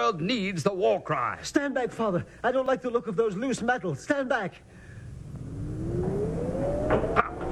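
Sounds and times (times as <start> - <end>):
speech: 0.0 - 4.8, 6.9 - 7.2
printing press starting up: 4.9 - 7.5.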